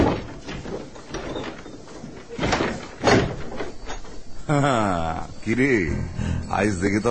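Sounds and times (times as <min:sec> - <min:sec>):
door being opened with dull thumps and rattling mechanism: 0:00.0 - 0:04.2
speech: 0:04.5 - 0:07.0.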